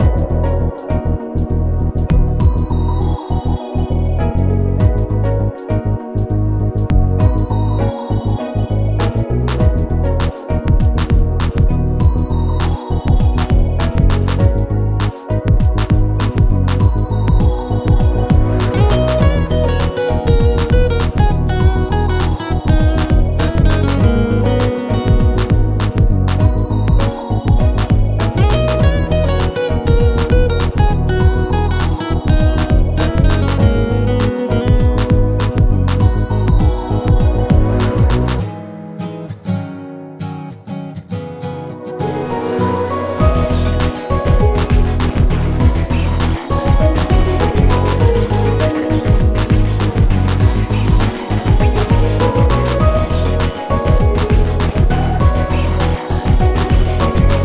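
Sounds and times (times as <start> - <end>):
background music: 0.0 - 40.3, 41.4 - 57.4.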